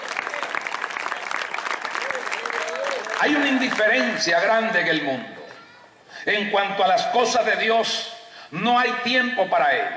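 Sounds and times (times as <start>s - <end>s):
audience applauding: 0.0s - 4.3s
speech: 3.2s - 5.3s, 6.2s - 9.9s.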